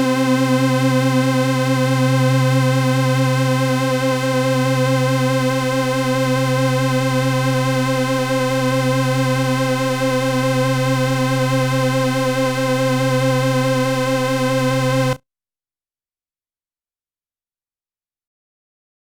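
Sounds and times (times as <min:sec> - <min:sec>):
Toraiz samples through a high-pass filter: 0:00.2 - 0:15.2.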